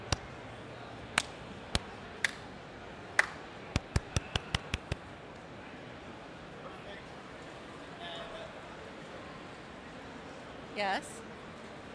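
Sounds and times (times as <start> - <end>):
sharp hand claps before recording: 0.0 - 0.3, 1.1 - 2.5, 3.2 - 5.0
speech: 10.8 - 11.2.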